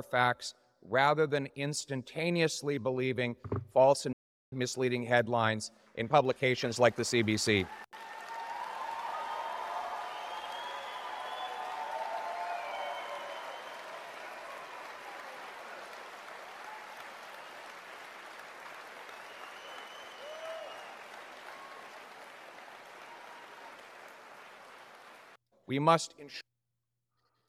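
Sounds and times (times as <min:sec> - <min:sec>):
speech: 0:00.0 - 0:07.8, 0:25.8 - 0:26.5
crowd applause: 0:06.8 - 0:25.4.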